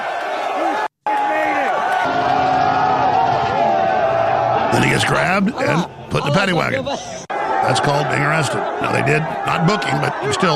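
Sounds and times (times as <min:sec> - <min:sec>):
crowd cheering: 0:00.0 - 0:10.5
speech: 0:04.8 - 0:10.5.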